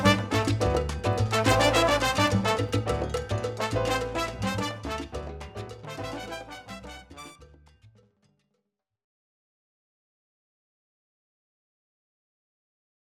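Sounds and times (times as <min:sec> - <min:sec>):
Latin theme music: 0:00.0 - 0:07.7.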